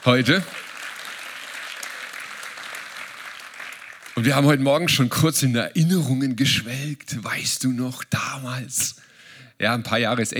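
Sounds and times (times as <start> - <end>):
speech: 0.0 - 0.6, 4.2 - 10.3
audience applause: 0.0 - 4.7.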